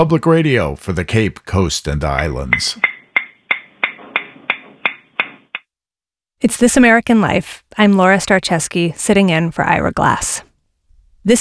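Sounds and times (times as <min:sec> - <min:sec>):
speech: 0:00.0 - 0:02.9, 0:06.4 - 0:10.5
tapping in water rising in pitch: 0:02.0 - 0:05.6.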